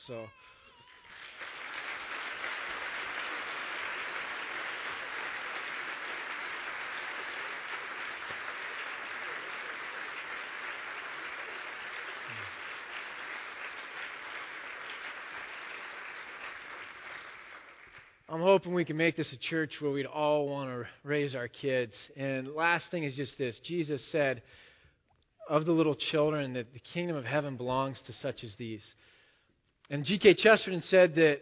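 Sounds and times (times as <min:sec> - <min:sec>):
speech: 0:00.0 - 0:00.5, 0:18.3 - 0:24.6, 0:25.5 - 0:29.1, 0:29.9 - 0:31.4
audience applause: 0:00.8 - 0:18.2.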